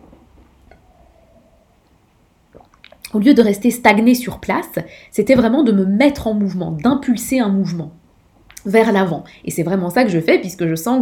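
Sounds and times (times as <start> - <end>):
person sipping a drink of water: 2.4 - 3.2
speech: 3.1 - 8.0, 8.6 - 10.9.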